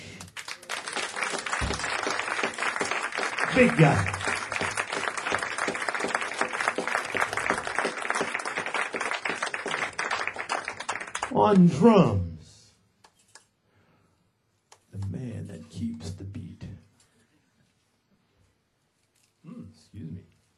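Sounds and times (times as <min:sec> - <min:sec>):
audience applause: 0:00.3 - 0:11.7
speech: 0:03.5 - 0:04.2, 0:11.4 - 0:12.3.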